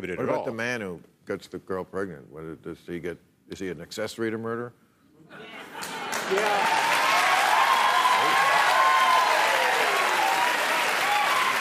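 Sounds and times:
speech: 0:00.0 - 0:06.9
audience applause: 0:05.8 - 0:11.6
scattered cheers: 0:06.2 - 0:11.6.

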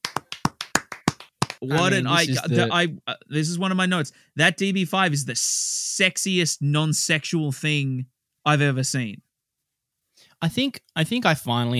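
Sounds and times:
round of applause: 0:00.0 - 0:02.2
speech: 0:01.6 - 0:09.2, 0:10.4 - 0:11.7.

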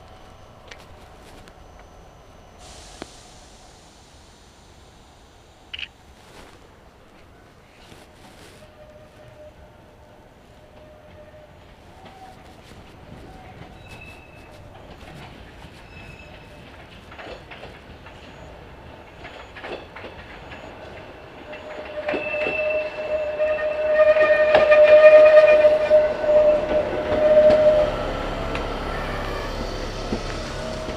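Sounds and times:
Yokkaichi Asunarou Railway train rumble: 0:00.0 - 0:30.9
sharp clicks: 0:05.7 - 0:06.0
steady high squeal: 0:13.5 - 0:15.0, 0:15.8 - 0:16.7, 0:21.5 - 0:30.9.

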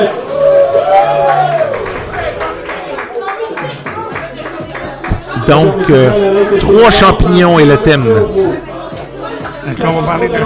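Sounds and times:
audience applause and cheering: 0:00.0 - 0:06.6
speech: 0:05.5 - 0:08.7, 0:09.7 - 0:10.4.

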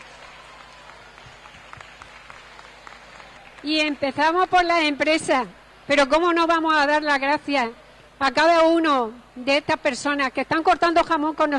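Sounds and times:
audience applause: 0:00.0 - 0:03.7
speech: 0:03.6 - 0:11.5.

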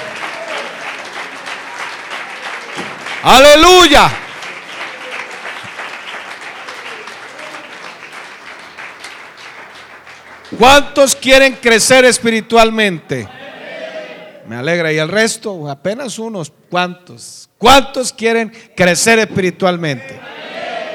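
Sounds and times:
crowd applauding: 0:00.0 - 0:11.5
speech: 0:03.2 - 0:04.2, 0:10.6 - 0:13.4, 0:14.5 - 0:20.4
loud voice shouting: 0:03.3 - 0:04.2.

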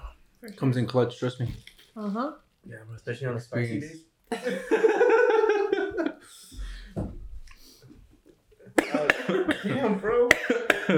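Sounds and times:
speech: 0:00.4 - 0:05.4, 0:09.3 - 0:10.9
laughter: 0:04.3 - 0:06.8, 0:08.8 - 0:10.9
person coughing heavily: 0:08.8 - 0:10.9.

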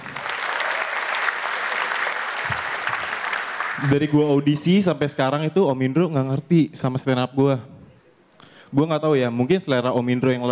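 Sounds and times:
audience applause: 0:00.0 - 0:04.1
speech: 0:03.8 - 0:07.7, 0:08.7 - 0:10.5.

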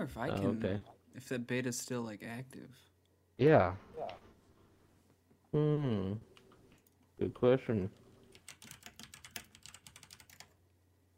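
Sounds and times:
speech: 0:00.0 - 0:04.2, 0:05.5 - 0:06.3, 0:07.2 - 0:08.0
computer keyboard typing: 0:08.3 - 0:10.6.

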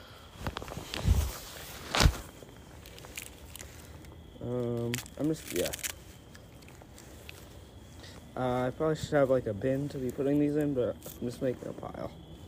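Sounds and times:
quiet rustling: 0:00.2 - 0:12.4
carrot tops snipped in a fall garden: 0:01.8 - 0:07.4
speech: 0:05.3 - 0:05.9, 0:08.4 - 0:12.2.

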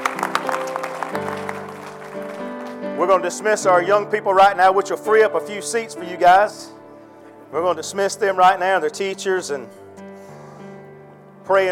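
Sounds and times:
crowd clapping in praise: 0:00.0 - 0:03.4
sustained organ chords: 0:00.0 - 0:11.7
speech: 0:03.0 - 0:06.8, 0:07.5 - 0:09.8, 0:11.5 - 0:11.7.

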